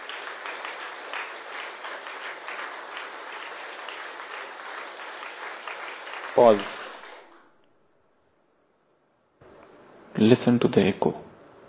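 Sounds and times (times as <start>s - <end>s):
crowd clapping: 0.0s - 7.6s
speech: 6.4s - 6.8s, 10.2s - 11.2s.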